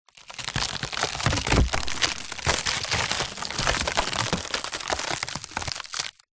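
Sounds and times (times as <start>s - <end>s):
wood breaking and splintering: 0.1s - 6.3s
wood collapsing: 0.2s - 6.3s
wood impacts: 0.9s - 5.8s.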